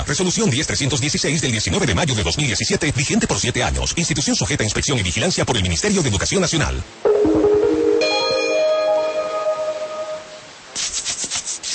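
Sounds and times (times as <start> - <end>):
speech: 0.1 - 7.5
bright ringing tone: 7.1 - 10.5.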